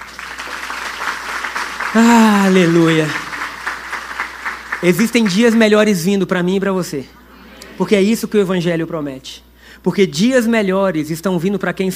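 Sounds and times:
audience applauding: 0:00.0 - 0:05.7
speech: 0:02.0 - 0:03.2, 0:04.8 - 0:07.2, 0:07.8 - 0:11.9.

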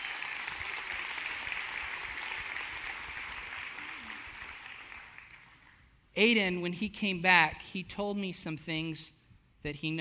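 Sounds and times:
church congregation applauding to welcome a speaker: 0:00.0 - 0:05.8
speech: 0:06.2 - 0:09.9.

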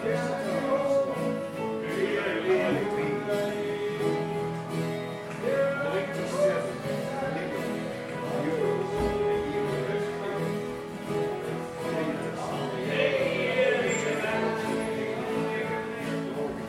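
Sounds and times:
group sing-along in an Irish pub: 0:00.0 - 0:16.6.

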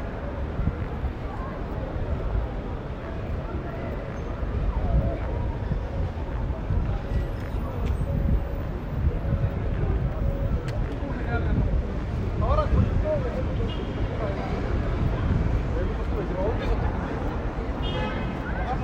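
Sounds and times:
street sounds of Pigalle: 0:00.0 - 0:18.8.

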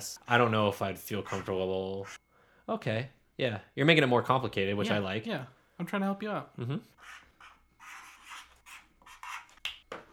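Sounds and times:
speech: 0:00.0 - 0:07.2
someone writing by hand: 0:01.1 - 0:02.2, 0:07.0 - 0:09.6.

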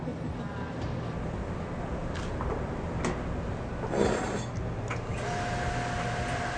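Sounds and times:
industrial microwave dryer whirring and humming: 0:00.0 - 0:06.5.

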